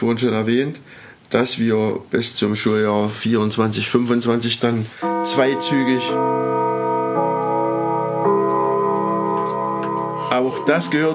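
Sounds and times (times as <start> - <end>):
speech: 0.0 - 6.7, 10.3 - 11.1
school bell chiming: 5.0 - 11.1.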